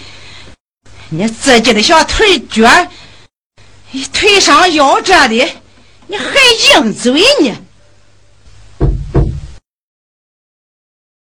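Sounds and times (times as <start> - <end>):
speech: 1.1 - 3.0, 3.9 - 7.6
knocking on a door: 8.8 - 9.6.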